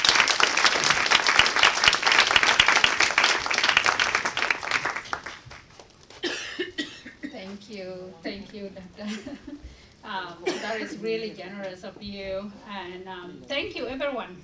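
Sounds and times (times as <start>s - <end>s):
audience applause as a guest speaker is welcomed: 0.0s - 6.2s
speech: 7.8s - 14.4s.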